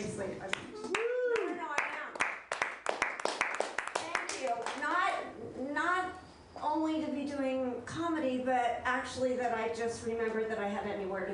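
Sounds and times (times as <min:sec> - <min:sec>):
speech: 0:00.2 - 0:00.8, 0:06.8 - 0:11.3
audience clapping for a new comedian: 0:00.5 - 0:04.9.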